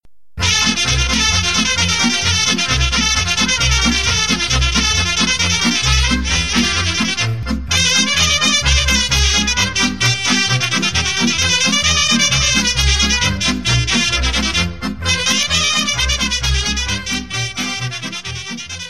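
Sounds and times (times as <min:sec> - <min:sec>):
Romanian folk dance music: 0:00.4 - 0:18.8.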